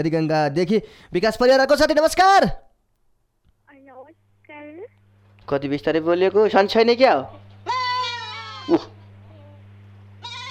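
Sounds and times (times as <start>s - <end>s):
speech: 0.0s - 2.6s, 4.0s - 7.8s, 8.7s - 8.9s
goat bleating inside a room: 7.6s - 9.0s, 10.2s - 10.4s.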